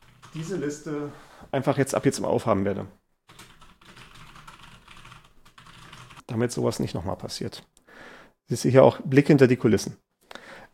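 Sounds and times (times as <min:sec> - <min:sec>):
typing a note on a computer keyboard: 0:00.0 - 0:00.6, 0:03.3 - 0:06.3
speech: 0:00.4 - 0:03.0, 0:06.4 - 0:07.7, 0:08.5 - 0:10.0.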